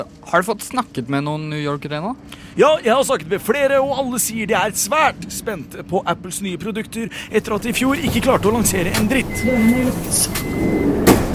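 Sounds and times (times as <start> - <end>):
speech: 0.0 - 10.8
metro train passing: 7.2 - 11.0.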